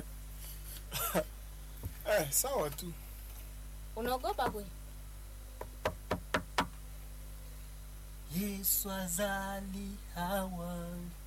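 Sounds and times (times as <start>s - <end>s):
speech: 2.2s - 3.0s, 4.0s - 4.8s, 8.4s - 11.2s
knocking on a door: 5.6s - 6.7s.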